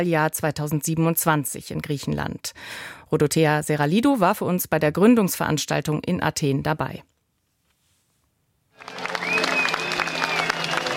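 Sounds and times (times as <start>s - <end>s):
speech: 0.0s - 7.1s
large crowd applauding: 8.8s - 10.9s
faint whistle: 9.1s - 10.9s.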